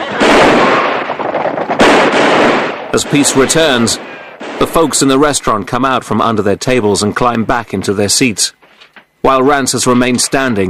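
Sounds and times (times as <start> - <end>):
pistol gunshots fired by a gang: 0.0 - 4.8
speech: 3.0 - 8.6, 9.2 - 10.6.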